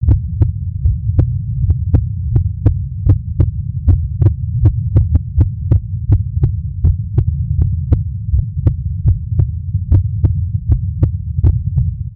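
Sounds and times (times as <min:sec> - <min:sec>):
real heartbeat: 0:00.0 - 0:12.1.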